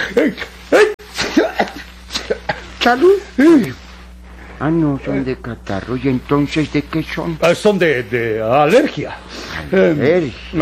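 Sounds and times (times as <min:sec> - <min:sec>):
speech: 0:00.1 - 0:00.5, 0:02.8 - 0:03.8, 0:04.6 - 0:10.6
sneeze: 0:00.7 - 0:02.7.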